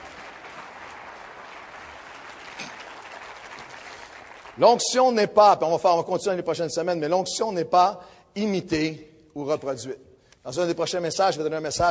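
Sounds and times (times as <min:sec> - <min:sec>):
crowd audience applause: 0:00.0 - 0:04.6
speech: 0:04.6 - 0:11.9.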